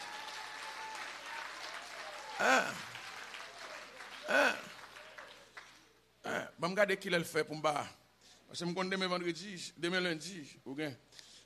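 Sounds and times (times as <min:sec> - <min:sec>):
people shouting or cheering: 0:00.0 - 0:05.6
audience applause: 0:00.0 - 0:05.9
speech: 0:02.4 - 0:02.9, 0:06.6 - 0:11.3.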